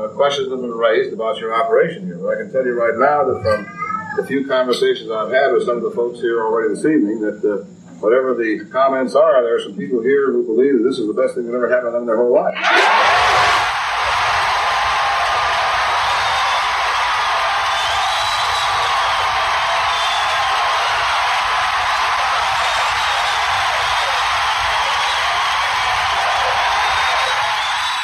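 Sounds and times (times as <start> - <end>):
speech: 0.1 - 13.0
crowd applauding and cheering: 12.6 - 28.0
shrill whistles and whoops: 12.6 - 28.0.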